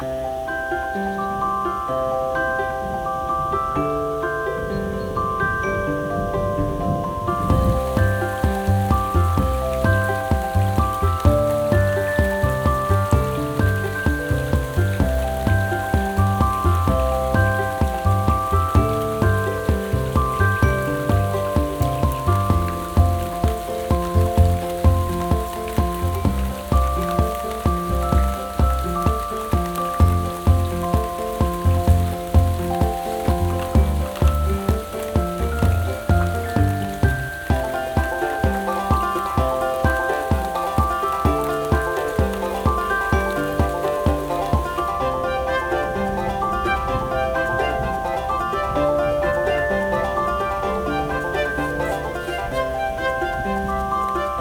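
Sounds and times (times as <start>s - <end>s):
rain at dusk: 0.0s - 54.3s.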